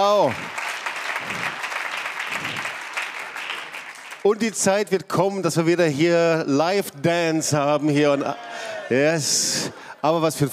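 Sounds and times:
speech: 0.0s - 0.6s, 4.2s - 10.5s
audience applause: 0.0s - 4.6s.

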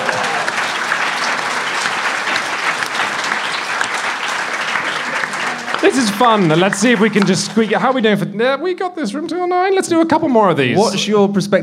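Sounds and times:
audience applause: 0.0s - 8.2s
speech: 5.9s - 11.6s.

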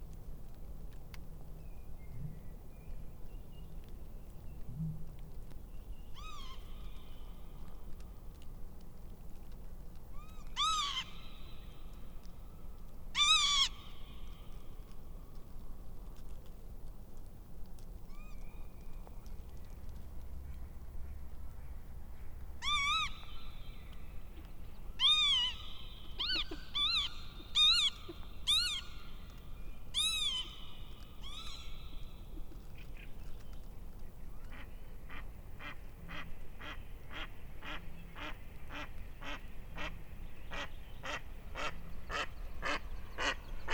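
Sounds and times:
low steady rumble: 0.0s - 43.7s
northern lapwings Vanellus vanellus giving nasal wheezy calls: 10.2s - 11.7s, 13.2s - 14.3s, 22.6s - 33.2s.

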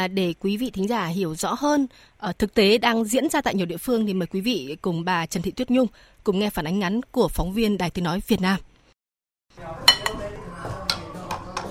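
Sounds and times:
speech: 0.0s - 8.7s, 9.6s - 9.8s
dishes and cutlery clinking in a busy pho breakfast shop: 9.8s - 11.6s.

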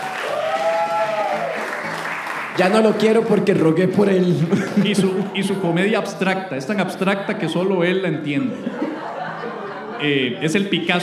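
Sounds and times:
audience applause: 0.0s - 3.5s
speech: 2.6s - 8.8s, 10.0s - 11.0s
laughter: 4.0s - 6.2s, 7.0s - 11.0s.

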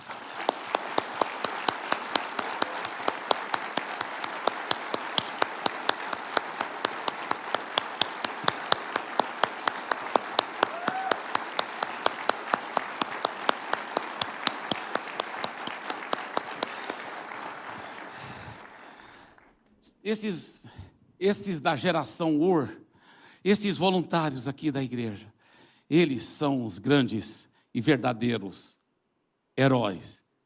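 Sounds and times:
audience applause: 0.0s - 19.6s
speech: 20.1s - 20.6s, 21.2s - 22.8s, 23.4s - 25.3s, 25.9s - 28.8s, 29.6s - 30.2s.

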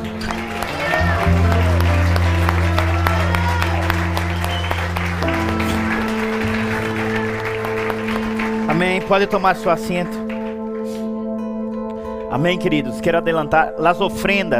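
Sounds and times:
applause: 0.0s - 11.1s
speech: 9.0s - 10.2s, 12.3s - 14.5s.

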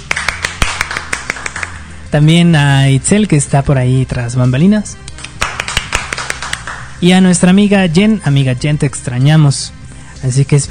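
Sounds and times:
scattered studio hand claps from a small group: 0.0s - 1.9s, 5.1s - 6.9s
speech: 2.1s - 5.1s, 7.0s - 10.6s.

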